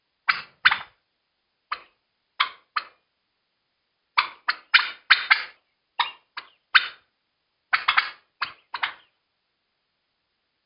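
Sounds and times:
turkey panic calling: 0.3 - 1.0, 1.7 - 3.0, 4.2 - 7.1, 7.7 - 9.1.

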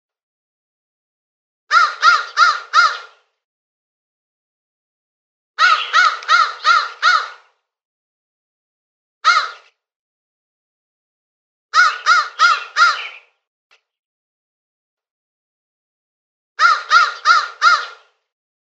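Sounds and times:
crow uttering rasping caws: 1.7 - 3.2, 5.6 - 7.5, 9.2 - 9.7, 11.7 - 13.3, 16.6 - 18.2.

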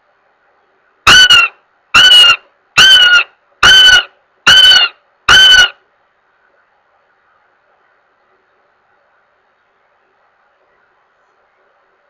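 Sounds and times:
goshawk giving harsh level wailing notes: 1.1 - 5.8.

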